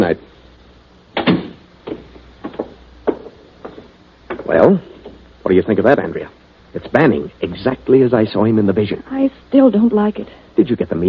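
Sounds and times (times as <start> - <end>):
speech: 0.1 - 0.3, 5.5 - 11.0
door opening and closing: 1.2 - 5.2.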